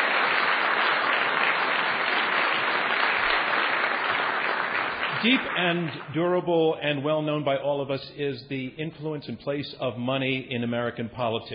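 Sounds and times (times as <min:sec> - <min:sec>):
audience applause: 0:00.0 - 0:06.2
speech: 0:05.2 - 0:11.5.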